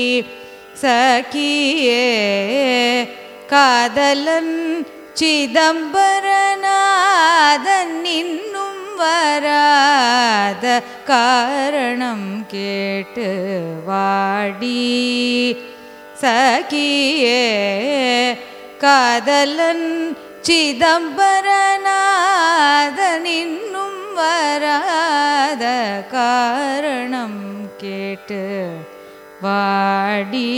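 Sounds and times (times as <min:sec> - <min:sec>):
Carnatic raga music: 0:00.0 - 0:30.5.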